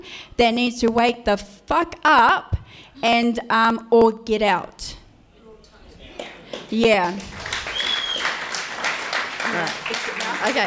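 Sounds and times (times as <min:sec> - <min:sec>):
speech: 0:00.0 - 0:05.0, 0:06.5 - 0:07.4, 0:09.5 - 0:10.6
audience applause: 0:06.2 - 0:10.6.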